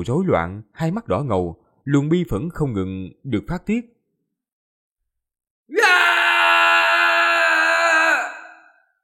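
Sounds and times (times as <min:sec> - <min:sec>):
speech: 0:00.0 - 0:04.0, 0:05.7 - 0:06.0
man's long anguished scream of grief and rage: 0:05.7 - 0:08.9.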